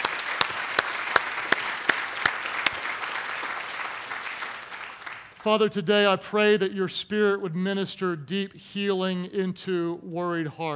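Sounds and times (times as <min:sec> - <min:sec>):
audience applause: 0:00.0 - 0:05.4
speech: 0:05.4 - 0:10.7.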